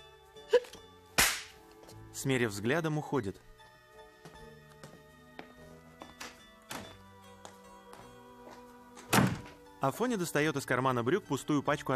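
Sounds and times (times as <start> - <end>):
slap across the face: 1.2 - 1.6
speech: 2.2 - 3.6, 9.8 - 11.9.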